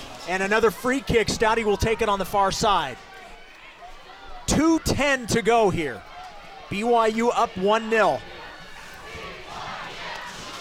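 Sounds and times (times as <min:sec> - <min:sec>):
BYU fans cheering and chanting in stadium: 0:00.0 - 0:10.5
speech: 0:00.3 - 0:03.1, 0:04.5 - 0:06.1, 0:06.7 - 0:08.3.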